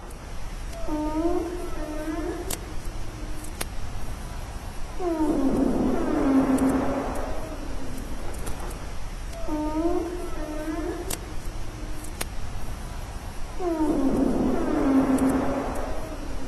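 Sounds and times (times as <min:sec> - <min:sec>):
humpback whale social sounds: 0:00.7 - 0:03.4, 0:04.9 - 0:08.6, 0:09.3 - 0:12.0, 0:13.5 - 0:16.4.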